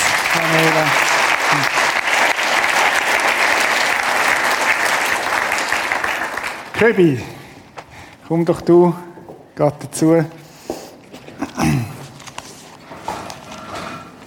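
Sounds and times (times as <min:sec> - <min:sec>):
audience applause: 0:00.0 - 0:07.4
speech: 0:00.4 - 0:01.8, 0:06.8 - 0:07.4, 0:08.3 - 0:10.4.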